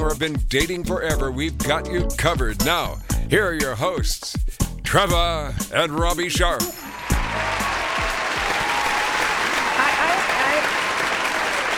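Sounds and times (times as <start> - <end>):
speech: 0.1 - 7.6
applause: 6.8 - 11.7.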